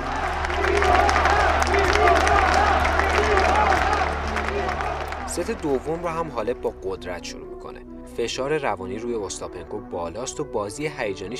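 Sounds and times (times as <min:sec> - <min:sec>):
tennis crowd in a stadium cheering and applauding for Simona Halep: 0:00.0 - 0:06.5
speech: 0:05.4 - 0:07.5, 0:08.2 - 0:11.3.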